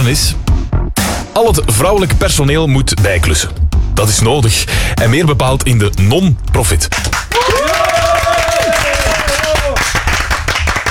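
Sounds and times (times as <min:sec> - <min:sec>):
speech: 0:00.1 - 0:00.5, 0:01.4 - 0:07.1
audience applause: 0:07.0 - 0:10.9.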